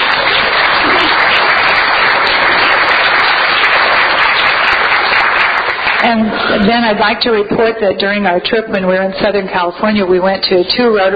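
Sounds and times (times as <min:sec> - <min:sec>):
club members applauding: 0:00.0 - 0:07.4
speech: 0:06.0 - 0:11.1.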